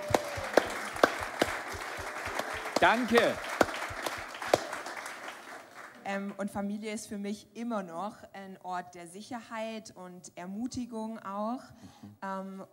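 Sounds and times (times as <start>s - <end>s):
audience applause: 0.0s - 6.0s
speech: 2.8s - 3.5s, 6.1s - 12.7s.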